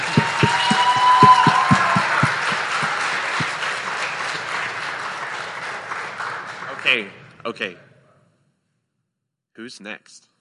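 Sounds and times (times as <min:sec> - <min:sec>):
round of applause: 0:00.0 - 0:07.2
speech: 0:07.0 - 0:07.9, 0:09.6 - 0:10.3.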